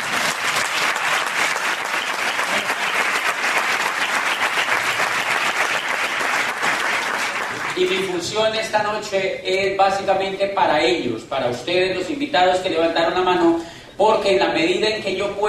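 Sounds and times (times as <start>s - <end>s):
audience applause: 0.0s - 8.1s
speech: 7.8s - 15.4s.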